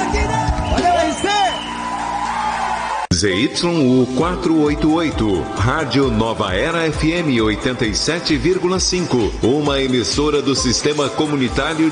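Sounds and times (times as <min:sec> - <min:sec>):
crowd clapping: 0:00.0 - 0:03.1
people whooping and cheering: 0:00.0 - 0:03.1
speech: 0:03.2 - 0:11.9.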